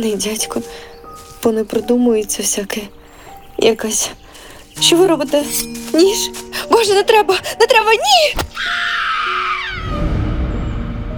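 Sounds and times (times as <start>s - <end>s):
speech: 0.0s - 3.0s, 3.6s - 4.2s, 4.8s - 9.0s
child screaming in fear and pain: 8.6s - 10.0s.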